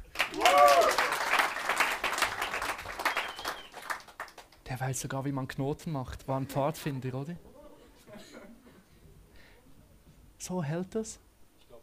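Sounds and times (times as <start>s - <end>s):
audience applause: 0.0s - 4.6s
speech: 4.8s - 7.5s, 10.5s - 11.3s.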